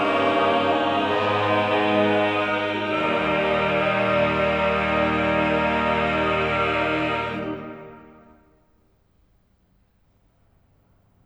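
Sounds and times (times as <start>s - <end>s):
choral cantata: 0.0s - 8.4s.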